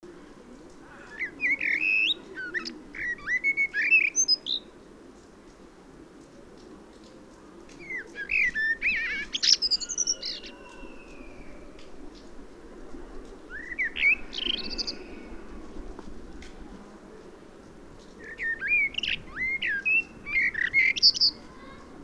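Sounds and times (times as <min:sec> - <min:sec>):
common blackbird singing: 0:00.9 - 0:04.7, 0:07.8 - 0:11.6, 0:13.5 - 0:15.4, 0:18.2 - 0:21.9.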